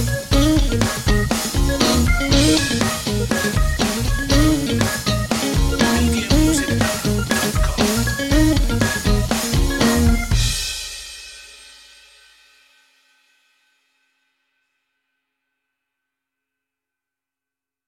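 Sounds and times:
funky guitar: 0:00.0 - 0:10.7
tonewheel organ: 0:00.0 - 0:10.7.

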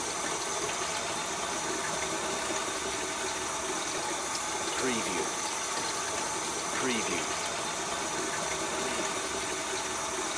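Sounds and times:
flow through a pipe: 0:00.0 - 0:10.3.

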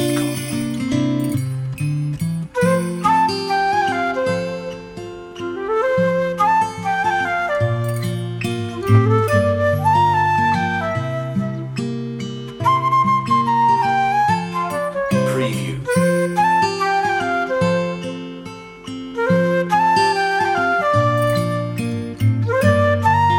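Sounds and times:
guitar playing a Christmas song: 0:00.0 - 0:23.3.

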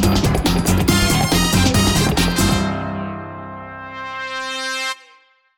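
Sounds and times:
brass ending of a chase loop: 0:00.1 - 0:05.5.

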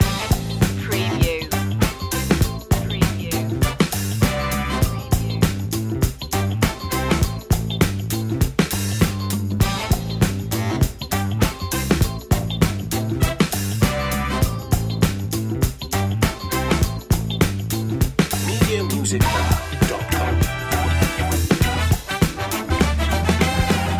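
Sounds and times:
funk music loop: 0:00.0 - 0:23.9.

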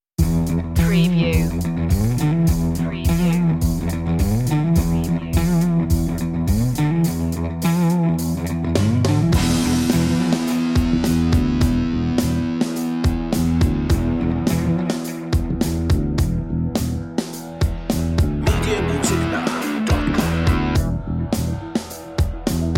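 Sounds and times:
guitar: 0:00.2 - 0:22.7.

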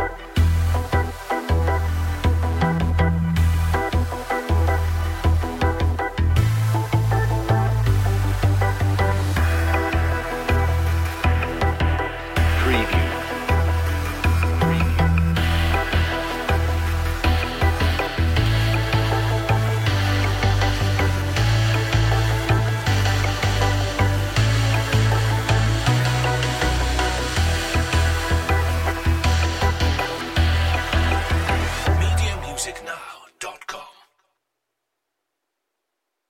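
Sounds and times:
instrumental music without drums: 0:00.0 - 0:33.4.

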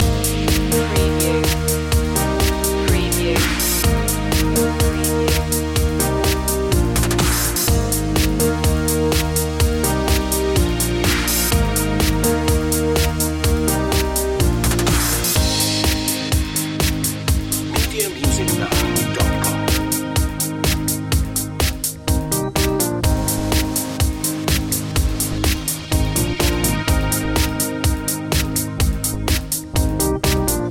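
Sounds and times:
dance music loop: 0:00.0 - 0:30.6.

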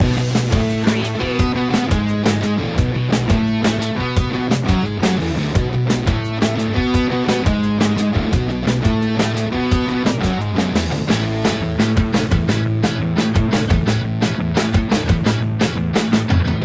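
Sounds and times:
punk pop loop: 0:00.0 - 0:16.6.

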